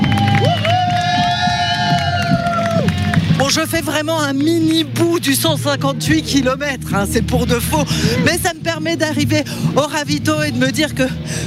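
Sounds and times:
spectators cheering to encourage a runner in a 158 km race: 0.0s - 4.0s
general crowd noise: 0.0s - 11.4s
speech: 3.5s - 11.4s.

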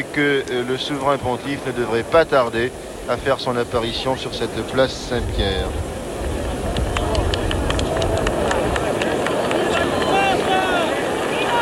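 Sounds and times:
speech: 0.0s - 6.0s
raised voices: 0.6s - 11.6s
large crowd applauding in a square: 5.4s - 11.6s.

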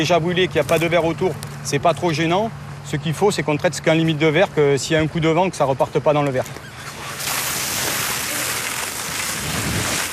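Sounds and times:
speech: 0.0s - 6.7s
fire hose spraying foam on a tree trunk: 6.8s - 10.1s.

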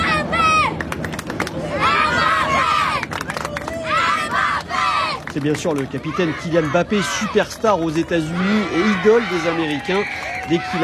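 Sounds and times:
large stadium crowd cheering: 0.0s - 10.8s
speech: 5.4s - 10.8s.

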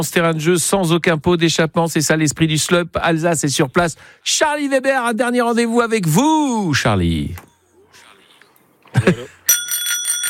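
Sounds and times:
speech: 0.0s - 7.5s, 8.9s - 9.4s
bicycle bell ringing: 9.4s - 10.2s.

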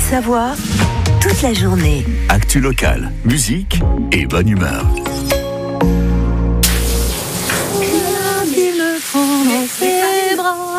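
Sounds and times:
speech: 0.1s - 6.0s
shower running water: 6.6s - 10.7s.

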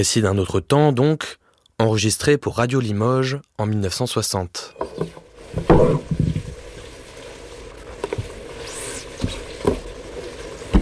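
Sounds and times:
speech: 0.0s - 6.2s
rabbit stew civet de lapin simmering in a pot: 4.8s - 10.7s.

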